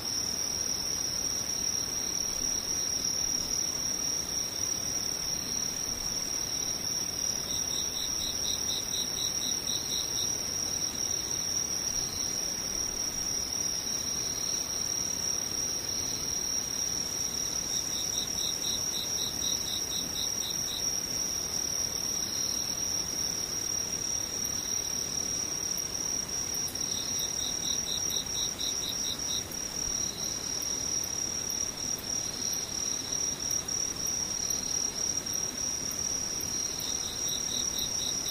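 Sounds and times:
insects singing in a high steady trill: 0:00.0 - 0:38.2.

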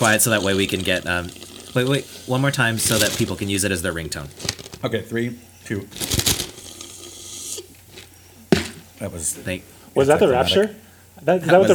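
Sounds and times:
slurping the last sip from a cup: 0:00.0 - 0:04.9, 0:05.9 - 0:08.2
speech: 0:00.0 - 0:06.2, 0:09.0 - 0:11.7.

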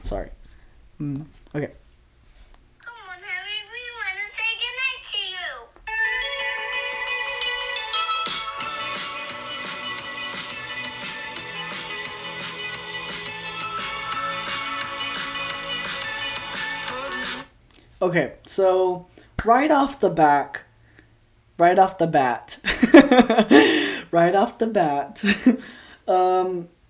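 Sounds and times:
speech: 0:00.1 - 0:00.4, 0:01.0 - 0:01.8, 0:18.0 - 0:20.6, 0:21.6 - 0:26.8
pop song recording played back: 0:05.9 - 0:17.5
laughter: 0:22.7 - 0:23.9.

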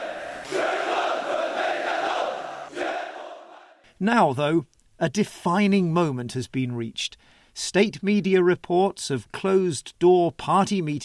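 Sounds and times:
massive crowd of soldiers shouting loyalty in unison at a military parade: 0:00.0 - 0:03.8
speech: 0:04.0 - 0:11.0.

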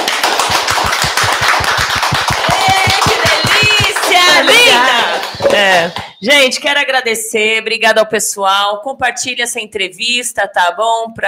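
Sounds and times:
audience clapping: 0:00.0 - 0:06.1
speech: 0:05.6 - 0:11.2.

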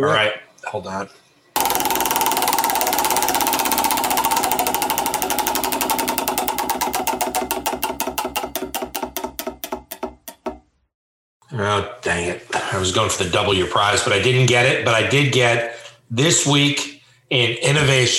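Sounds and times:
speech: 0:00.0 - 0:01.2, 0:11.6 - 0:18.1
spun prize wheel ticking: 0:01.6 - 0:09.2.

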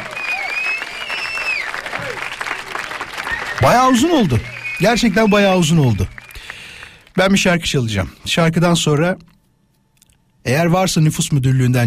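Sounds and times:
applause: 0:00.0 - 0:07.6
speech: 0:03.6 - 0:06.1, 0:07.2 - 0:09.3, 0:10.4 - 0:11.8.

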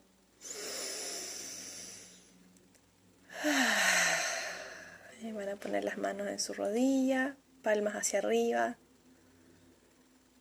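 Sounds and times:
deep inhale and exhale: 0:00.4 - 0:02.4, 0:03.3 - 0:05.1
speech: 0:05.4 - 0:08.8.

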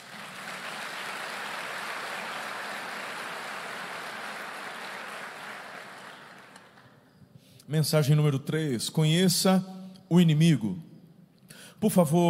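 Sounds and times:
audience applause: 0:00.0 - 0:07.0
speech: 0:07.7 - 0:10.9, 0:11.8 - 0:12.2.

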